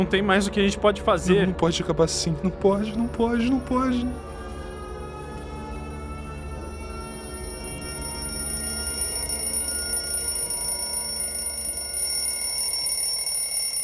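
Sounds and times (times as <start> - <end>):
speech: 0.0 - 4.3
alarm clock ringing with loud electronic tone: 2.8 - 13.8.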